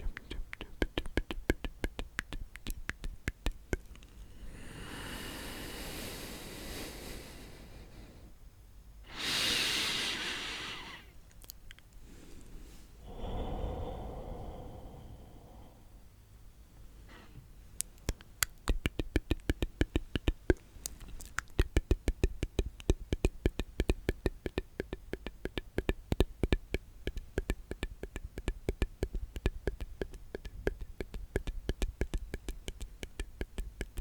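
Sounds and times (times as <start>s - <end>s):
wet mouth clicks and smacks: 0.0s - 4.3s, 11.3s - 12.0s, 17.8s - 34.0s
breathy hissing exhales or whispers: 4.3s - 8.3s, 9.1s - 11.1s, 12.1s - 16.0s.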